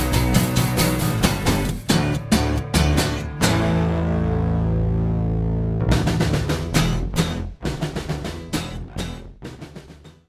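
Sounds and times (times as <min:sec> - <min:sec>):
acoustic drums: 0:00.0 - 0:03.7, 0:05.8 - 0:10.2
bass: 0:00.0 - 0:10.2.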